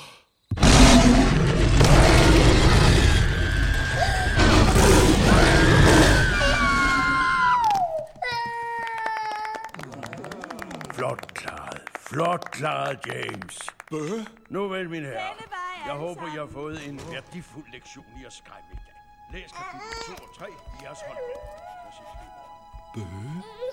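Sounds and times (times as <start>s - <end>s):
monster roar: 0.5s - 7.4s
speech: 12.4s - 23.7s.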